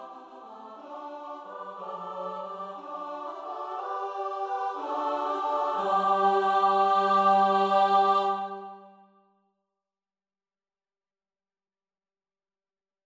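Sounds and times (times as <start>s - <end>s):
choir singing: 0.0s - 9.1s.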